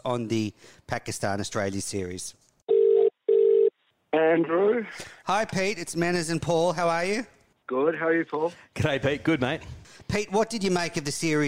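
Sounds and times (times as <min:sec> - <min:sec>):
speech: 0:00.0 - 0:02.4, 0:04.1 - 0:11.4
ringback tone of an outgoing phone call: 0:02.7 - 0:03.7.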